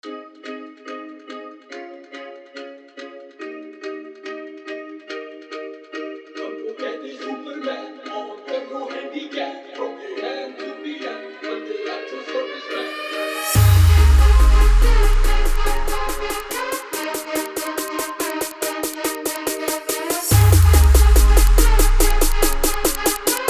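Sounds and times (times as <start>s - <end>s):
hard electro bass club dance remix: 13.5s - 23.4s.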